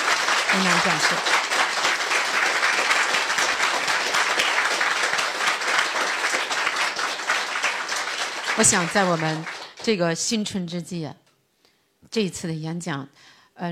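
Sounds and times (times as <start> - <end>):
warm applause from audience: 0.0 - 9.9
speech: 0.6 - 1.4, 8.6 - 11.2, 12.1 - 13.7.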